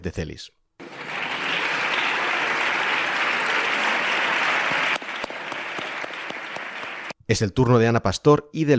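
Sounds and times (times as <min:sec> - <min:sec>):
speech: 0:00.0 - 0:00.6, 0:07.3 - 0:08.7
Socialist bench of the Congress applauding: 0:00.8 - 0:07.2.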